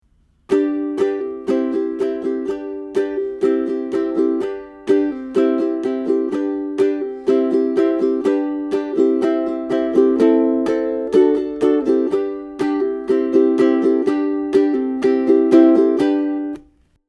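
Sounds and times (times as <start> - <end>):
ukulele strumming: 0.1 - 16.8.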